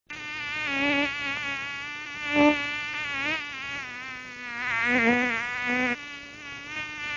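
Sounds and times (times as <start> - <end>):
mosquito buzzing: 0.1 - 7.1.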